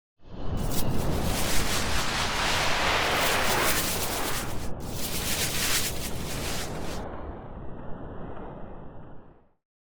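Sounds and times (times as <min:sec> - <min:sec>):
noisy swirls: 0:00.6 - 0:07.0.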